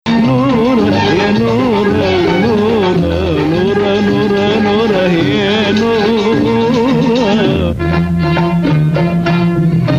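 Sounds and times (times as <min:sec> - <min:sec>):
maqam Bayati music: 0:00.1 - 0:09.9.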